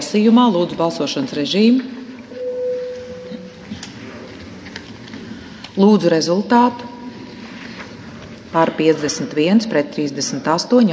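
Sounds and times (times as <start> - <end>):
speech: 0.1 - 2.0, 5.8 - 6.9, 8.5 - 10.9
parliamentary voting bell tone: 2.3 - 3.6.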